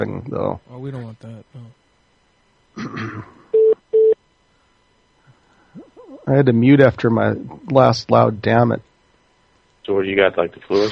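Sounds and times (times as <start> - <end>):
speech: 0.0 - 1.8, 2.8 - 3.4, 6.3 - 8.9, 9.9 - 10.9
beeps: 3.6 - 4.2.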